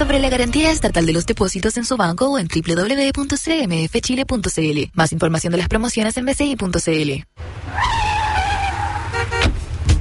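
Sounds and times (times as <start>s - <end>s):
speech: 0.1s - 7.9s
car skidding during a parking mishap: 7.5s - 9.4s.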